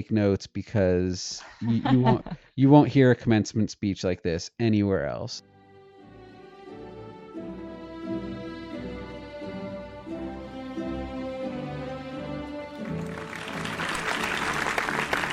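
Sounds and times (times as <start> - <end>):
speech: 0.0 - 5.5
laughter: 1.4 - 2.4
audience applause: 12.7 - 15.3.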